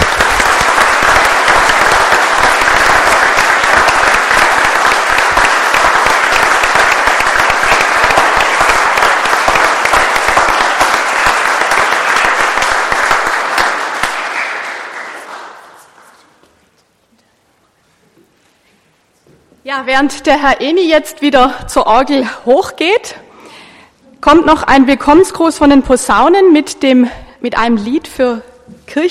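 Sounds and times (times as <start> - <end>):
audience clapping loudly in welcome: 0.0 - 16.6
speech: 19.8 - 23.2, 24.2 - 29.0.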